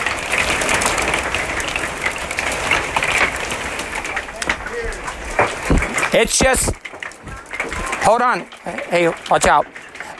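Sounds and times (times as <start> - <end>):
hailstorm: 0.0 - 10.1
speech: 6.1 - 6.8, 8.1 - 9.8.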